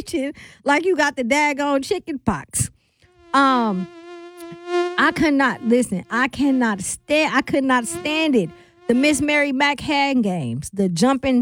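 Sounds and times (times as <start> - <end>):
speech: 0.0 - 4.0, 5.0 - 11.4
person imitating a mosquito buzzing: 3.1 - 9.3
person speaking quickly: 5.0 - 9.5.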